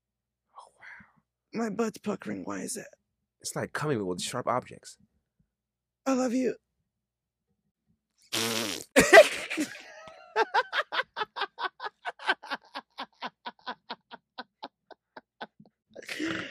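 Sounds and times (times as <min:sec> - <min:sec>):
speech: 0:01.5 - 0:05.1, 0:06.0 - 0:06.6, 0:09.6 - 0:09.8
voice imitating a fart with a long wet raspberry: 0:08.3 - 0:09.2
laughter: 0:09.0 - 0:16.2.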